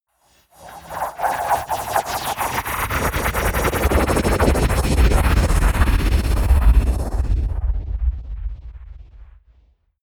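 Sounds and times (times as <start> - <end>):
whoosh flutter: 0.6 - 7.6.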